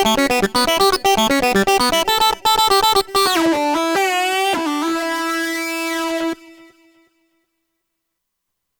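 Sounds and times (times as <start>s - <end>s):
hammer-on synth on a Kurzweil K2500X: 0.0s - 6.7s.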